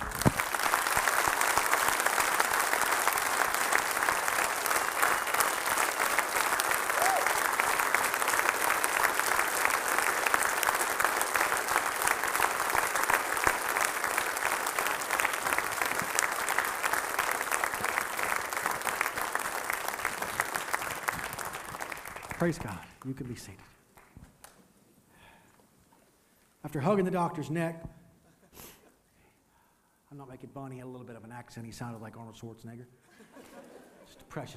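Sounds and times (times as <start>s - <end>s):
audience clapping hands in praise: 0.0s - 24.6s
speech: 22.4s - 23.7s, 26.7s - 28.0s, 30.5s - 33.1s, 34.3s - 34.5s.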